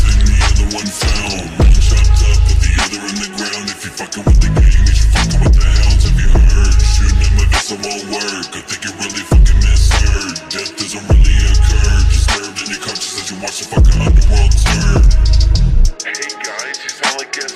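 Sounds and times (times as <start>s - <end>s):
slowed bass-boosted music: 0.0s - 7.9s, 9.2s - 12.4s, 13.8s - 16.0s.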